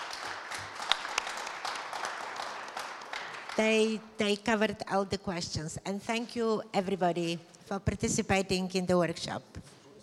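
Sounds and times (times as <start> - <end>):
audience applause for panelists: 0.0 - 3.6
speech: 3.6 - 9.8.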